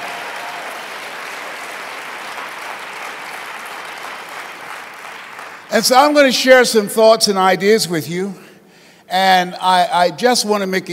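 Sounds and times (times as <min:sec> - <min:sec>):
audience round of applause: 0:00.0 - 0:05.7
speech: 0:05.7 - 0:08.4, 0:09.1 - 0:10.9.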